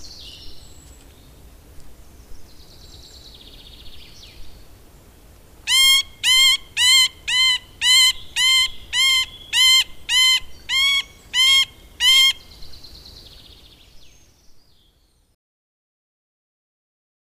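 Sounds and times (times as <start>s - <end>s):
middle spotted woodpecker nasal mewing quacks: 5.7s - 12.6s.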